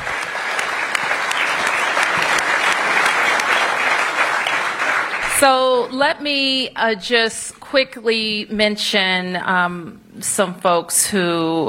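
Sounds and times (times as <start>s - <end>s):
applause: 0.0s - 5.7s
speech: 5.4s - 11.6s.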